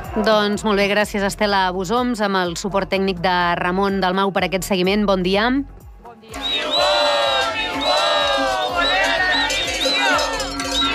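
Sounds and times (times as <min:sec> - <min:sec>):
speech: 0:00.2 - 0:06.9
protesting teachers chanting on the N-230 road in Alta Ribagorça: 0:06.1 - 0:10.9
people shouting: 0:06.3 - 0:10.9.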